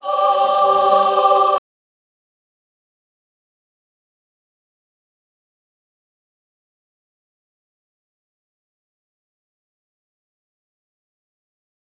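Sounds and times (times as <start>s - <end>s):
digitally distorted angelic voice: 0.0s - 1.6s.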